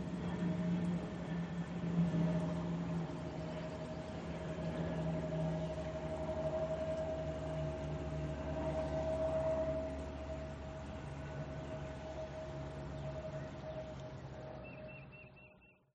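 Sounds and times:
stream by a campsite at sunrise: 0.0 - 15.4.

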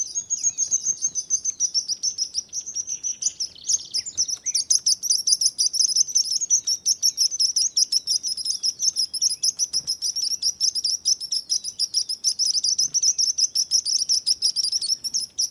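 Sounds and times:
sparrow singing while flying: 0.0 - 15.4.

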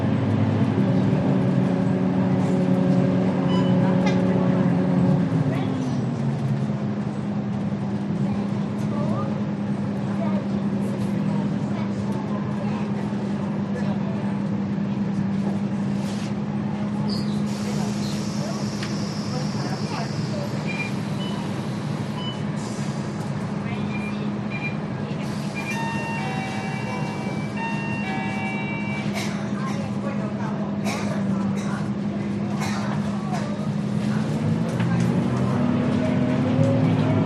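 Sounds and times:
slow bus ride inside a quiet bus in Singapore: 0.0 - 37.2.

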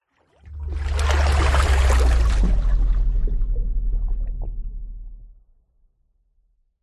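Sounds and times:
water whoosh: 0.4 - 5.3.

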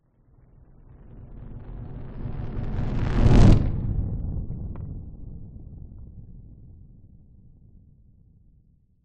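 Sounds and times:
large designed fireball passing by: 2.5 - 4.2.

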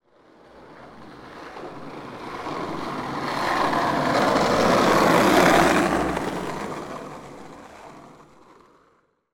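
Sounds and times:
skateboard passing by on street: 0.0 - 9.3.

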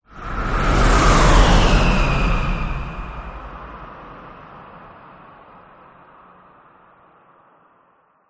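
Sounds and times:
whoosh: 0.1 - 4.8.

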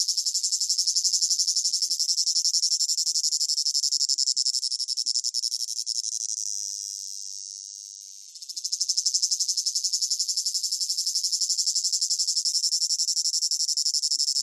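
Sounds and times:
cicada rhythmic chirping with piercing whine: 0.0 - 14.4.

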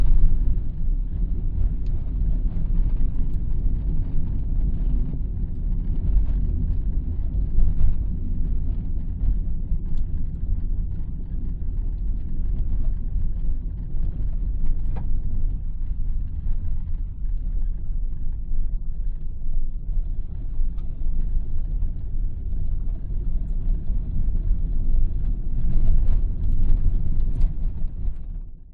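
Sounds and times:
car driving on bumpy slightly wet dirt track heard inside with windows closed: 0.0 - 28.5.

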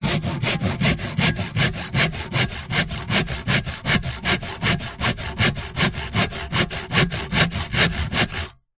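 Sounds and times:
industrial hand saw sawing wood with a hollow tone: 0.0 - 8.6.

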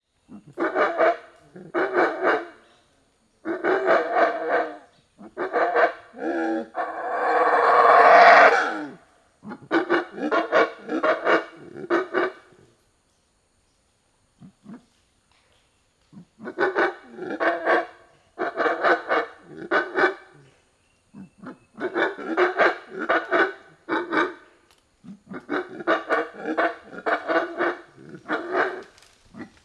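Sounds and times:
monkey barking in forest: 0.3 - 2.6, 3.4 - 12.5, 16.2 - 20.5, 21.2 - 24.4, 25.1 - 29.6.

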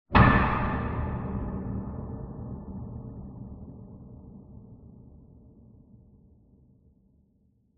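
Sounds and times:
loud metallic impact clunk with reverb: 0.1 - 3.3.

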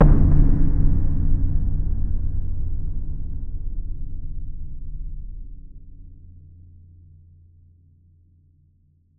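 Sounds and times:
impact boom thud: 0.0 - 3.6.

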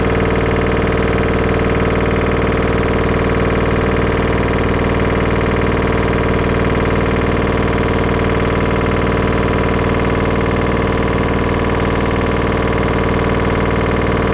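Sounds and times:
household washing machine on full spin: 0.0 - 14.3.

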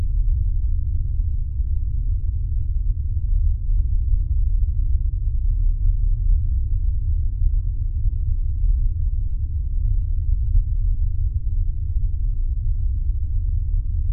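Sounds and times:
science fiction deep space atmosphere hum drone: 0.0 - 14.1.

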